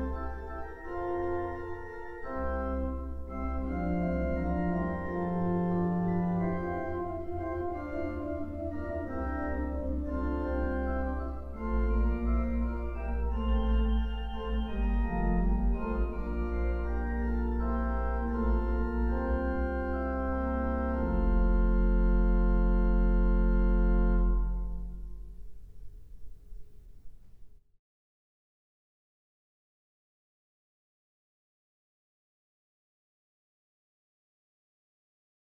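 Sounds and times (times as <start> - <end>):
classical piece in F: 0.0 - 27.6.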